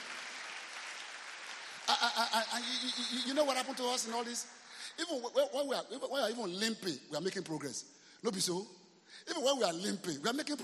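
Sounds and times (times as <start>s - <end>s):
church congregation clapping along during a service: 0.0s - 5.0s
speech: 2.0s - 10.6s.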